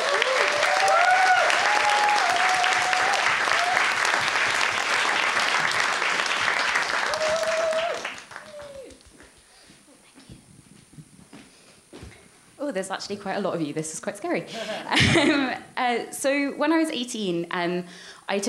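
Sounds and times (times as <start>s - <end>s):
audience applause: 0.0s - 9.2s
speech: 12.8s - 18.4s.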